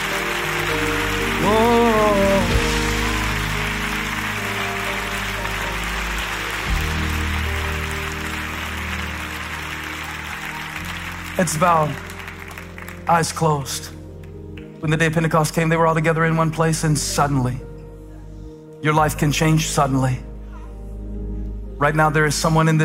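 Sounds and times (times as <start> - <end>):
audience clapping hands: 0.0 - 13.6
speech: 11.4 - 12.1, 13.1 - 14.0, 14.8 - 17.7, 18.8 - 20.3, 21.8 - 22.8.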